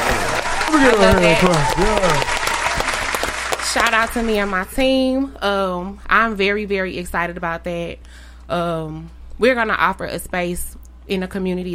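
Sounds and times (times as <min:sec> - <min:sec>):
audience clapping: 0:00.0 - 0:04.7
speech: 0:00.7 - 0:02.4, 0:03.7 - 0:11.7.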